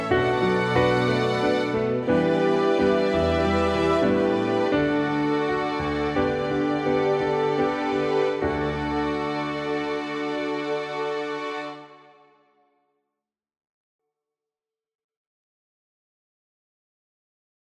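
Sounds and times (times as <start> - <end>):
instrumental backing track without melody: 0.0 - 11.8.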